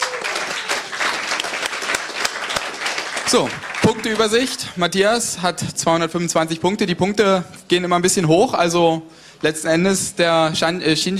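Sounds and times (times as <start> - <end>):
audience applause: 0.0 - 4.6
speech: 3.3 - 11.1.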